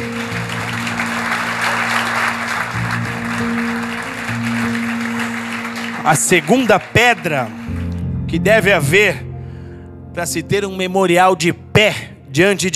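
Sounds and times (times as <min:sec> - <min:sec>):
audience applause: 0:00.0 - 0:07.9
speech: 0:06.1 - 0:07.6, 0:08.3 - 0:09.3, 0:10.2 - 0:12.7.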